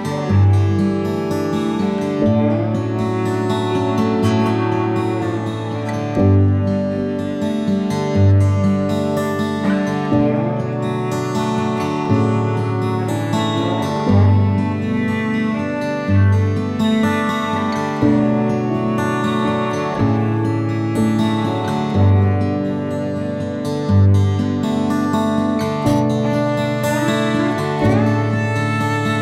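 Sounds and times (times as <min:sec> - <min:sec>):
acoustic music: 0:00.0 - 0:29.1.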